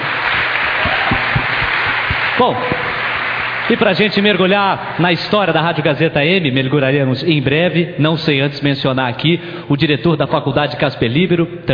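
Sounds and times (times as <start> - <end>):
audience applause: 0.0 - 5.6
speech: 2.4 - 2.8, 3.7 - 11.7.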